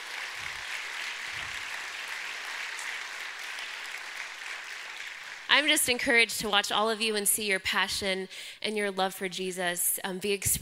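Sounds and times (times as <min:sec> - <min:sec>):
audience applause: 0:00.0 - 0:05.6
speech: 0:05.5 - 0:10.6.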